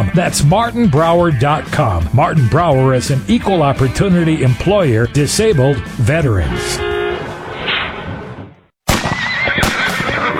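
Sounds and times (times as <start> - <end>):
speech: 0.0 - 6.9
horse neighing: 3.2 - 5.7, 9.1 - 10.3.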